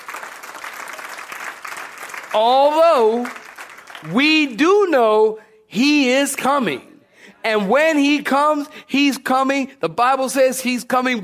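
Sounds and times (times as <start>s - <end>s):
audience clapping: 0.0s - 4.6s
speech: 2.3s - 3.4s, 4.0s - 11.2s.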